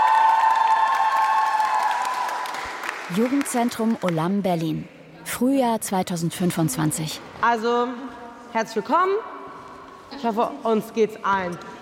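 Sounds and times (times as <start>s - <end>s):
crowd clapping: 0.0s - 4.3s
speech: 3.1s - 9.3s, 10.1s - 11.7s.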